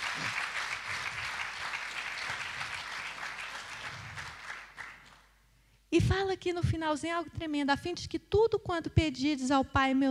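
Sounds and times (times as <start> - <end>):
audience applauding: 0.0 - 5.3
speech: 5.9 - 10.0.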